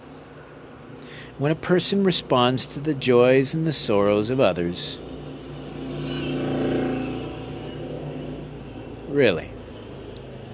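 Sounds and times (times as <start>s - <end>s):
speech: 1.4s - 5.1s, 9.2s - 9.6s
loud tuned motorbike engine revving: 5.0s - 10.5s.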